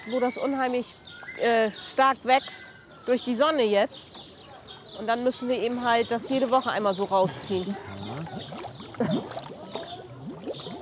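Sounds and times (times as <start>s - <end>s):
speech: 0.0s - 4.3s, 5.0s - 9.5s
algae-clogged water pump bubbling: 6.1s - 10.8s.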